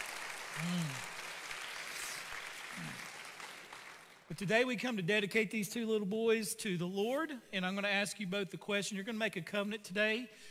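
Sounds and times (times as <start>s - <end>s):
audience hand clapping: 0.0s - 4.4s
speech: 4.3s - 10.4s.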